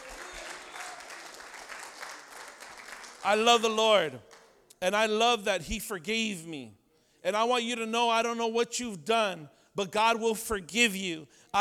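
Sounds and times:
crowd clapping hands: 0:00.0 - 0:04.7
speech: 0:03.2 - 0:11.5.

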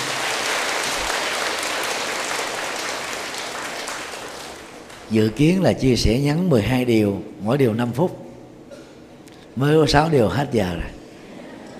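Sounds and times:
audience applause: 0:00.0 - 0:05.1
speech: 0:05.1 - 0:08.2, 0:09.6 - 0:11.0.

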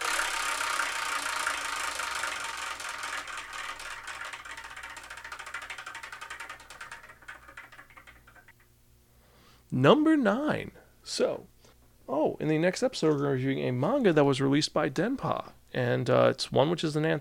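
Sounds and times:
prize wheel spun to pick a numbered slot: 0:00.0 - 0:08.6
speech: 0:09.7 - 0:11.5, 0:12.1 - 0:17.1.

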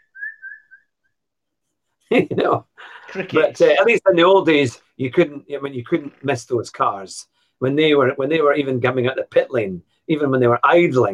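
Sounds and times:
person whistling chirps in imitation of little birds: 0:00.0 - 0:01.2
speech: 0:02.1 - 0:11.1.

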